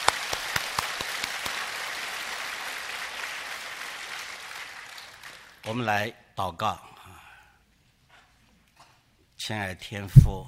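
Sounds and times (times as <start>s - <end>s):
audience applauding: 0.0s - 5.8s
speech: 5.6s - 6.9s, 9.5s - 10.4s.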